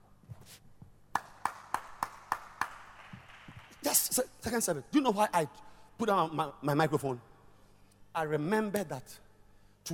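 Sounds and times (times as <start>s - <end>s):
hands clapping: 1.1s - 3.9s
speech: 4.2s - 7.3s, 8.2s - 9.2s.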